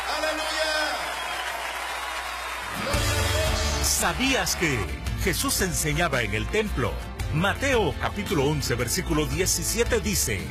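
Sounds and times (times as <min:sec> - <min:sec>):
audience applause: 0:00.0 - 0:05.2
speech: 0:04.0 - 0:10.4.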